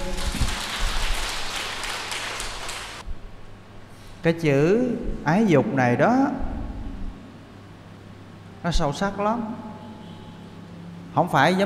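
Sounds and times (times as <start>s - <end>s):
audience applause: 0.0s - 3.0s
speech: 4.2s - 6.5s, 8.6s - 9.7s, 11.2s - 11.6s.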